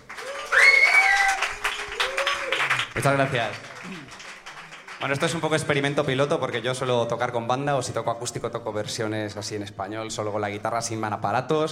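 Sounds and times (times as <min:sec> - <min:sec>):
audience applause: 0:00.0 - 0:06.6
speech: 0:03.0 - 0:04.2, 0:05.0 - 0:11.7.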